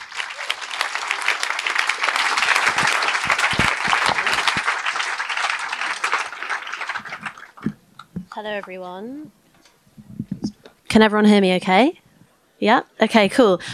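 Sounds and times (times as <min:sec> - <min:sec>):
festival audience at Greenbelt applauding to welcome a speaker: 0:00.0 - 0:09.0
speech: 0:08.4 - 0:09.4, 0:10.9 - 0:12.0, 0:12.6 - 0:13.7.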